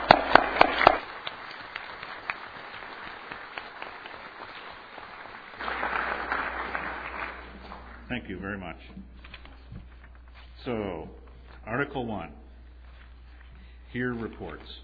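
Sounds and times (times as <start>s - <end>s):
audience applause: 0.0s - 8.5s
speech: 8.1s - 9.3s, 10.6s - 12.4s, 13.9s - 14.8s.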